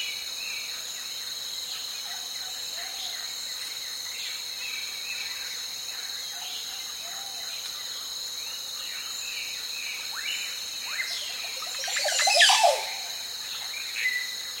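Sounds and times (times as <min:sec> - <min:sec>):
calm cricket chirping: 0:00.0 - 0:14.5
varied clear ringing birdsong on a lake: 0:11.0 - 0:13.2.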